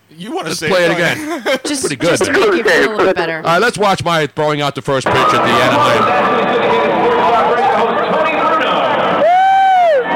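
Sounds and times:
speech: 0:00.1 - 0:06.4
laughter: 0:00.5 - 0:03.4
stadium crowd cheering at Angel Stadium: 0:05.0 - 0:10.1.

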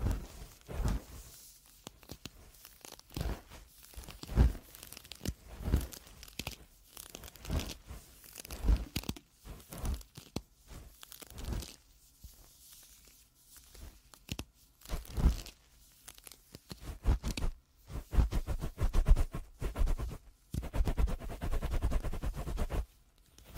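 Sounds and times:
ear cleaning scratching and rustling: 0:00.1 - 0:11.8, 0:16.1 - 0:22.8.

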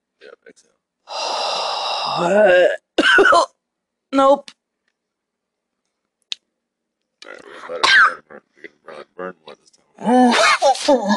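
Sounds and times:
speech: 0:00.3 - 0:01.3, 0:02.1 - 0:04.5, 0:07.3 - 0:11.1
person coughing: 0:03.0 - 0:03.6, 0:07.6 - 0:08.4.

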